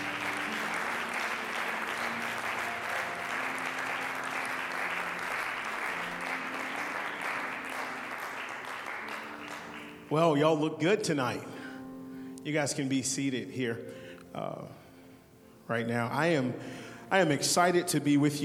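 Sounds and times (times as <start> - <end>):
audience hand clapping in praise: 0.0 - 10.4
speech: 10.1 - 11.5, 12.4 - 14.8, 15.7 - 18.4.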